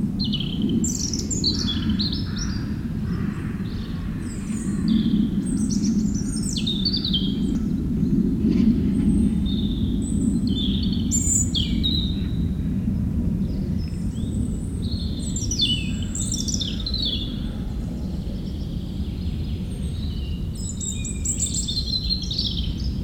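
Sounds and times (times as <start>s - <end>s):
jet planes roaring: 0.0s - 23.0s
European robin singing: 0.2s - 2.7s, 3.6s - 7.5s, 9.5s - 12.3s, 14.2s - 23.0s.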